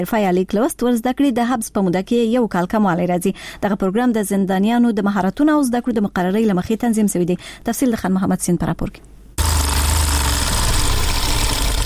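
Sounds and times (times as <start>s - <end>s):
speech: 0.0s - 9.2s
sewing machines in a prison tailoring workshop in Kabul: 9.4s - 11.8s.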